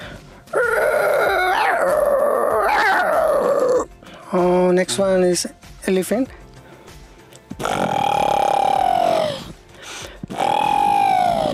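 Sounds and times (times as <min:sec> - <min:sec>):
person imitating a dog howl: 0:00.5 - 0:03.9, 0:07.6 - 0:09.5, 0:10.3 - 0:11.5
speech: 0:04.3 - 0:06.4.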